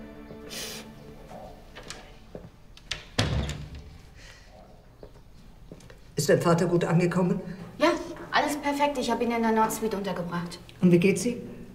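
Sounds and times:
door closing: 0:02.8 - 0:04.2
speech: 0:06.3 - 0:07.6, 0:08.6 - 0:11.5.

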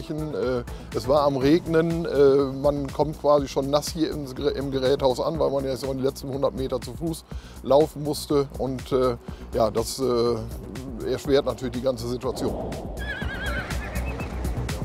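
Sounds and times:
speech: 0:00.0 - 0:13.2
young stallions about one and a half years old neighing in a herd: 0:12.7 - 0:14.7.

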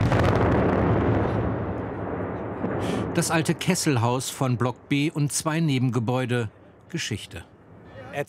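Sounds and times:
distant demolition blast: 0:00.0 - 0:04.9
speech: 0:03.2 - 0:07.5.

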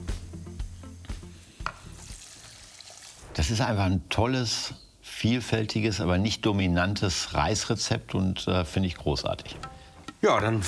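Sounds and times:
water poured into hot pan sizzling: 0:00.8 - 0:03.8
speech: 0:03.4 - 0:10.6.

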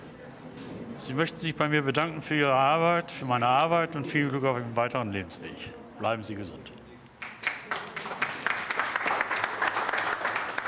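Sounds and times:
speech: 0:01.1 - 0:06.7
crowd applause: 0:07.2 - 0:10.6.

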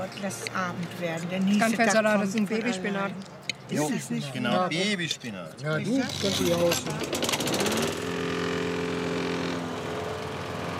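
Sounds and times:
speech: 0:00.0 - 0:07.7
neighbour's lawn mower running: 0:06.1 - 0:10.7.

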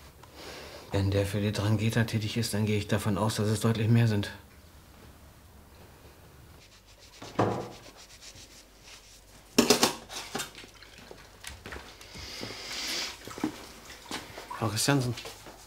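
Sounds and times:
speech: 0:00.9 - 0:04.5, 0:14.8 - 0:15.4
washing dishes by hand: 0:09.4 - 0:15.6.

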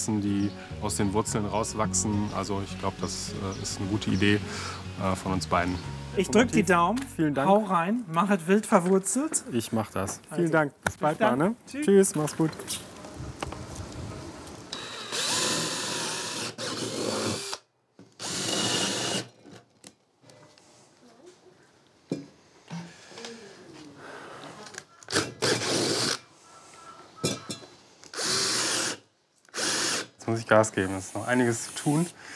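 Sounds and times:
speech: 0:00.0 - 0:12.9, 0:30.5 - 0:32.3
power drill boring into wood: 0:14.7 - 0:19.3, 0:25.1 - 0:26.2, 0:28.1 - 0:30.2.

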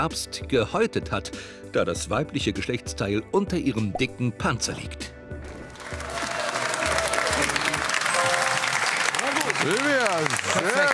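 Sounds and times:
speech: 0:00.0 - 0:05.2, 0:09.6 - 0:10.9
audience applause: 0:05.7 - 0:10.9.

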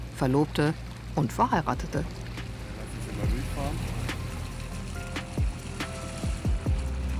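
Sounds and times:
riverboat moving along the water: 0:00.0 - 0:07.1
speech: 0:00.2 - 0:02.2.

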